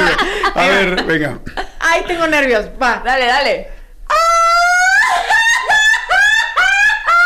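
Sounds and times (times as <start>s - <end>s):
laughter: 0.0s - 2.1s, 4.8s - 7.2s
speech: 0.1s - 3.8s
loud human scream: 4.1s - 7.2s.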